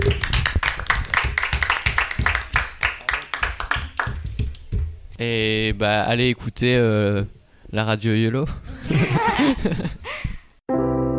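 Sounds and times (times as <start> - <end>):
applause: 0.0 - 4.6
speech: 5.2 - 10.1
laughter: 8.7 - 10.1.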